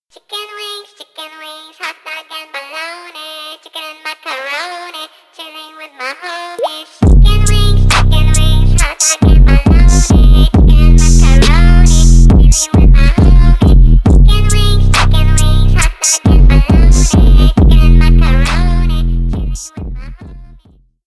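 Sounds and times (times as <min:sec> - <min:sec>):
music beat: 0:07.0 - 0:20.4.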